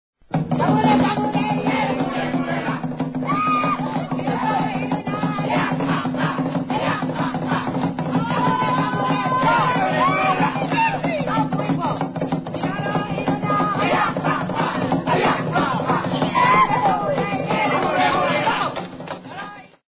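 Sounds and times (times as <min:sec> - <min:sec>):
native dance music: 0:00.3 - 0:19.8.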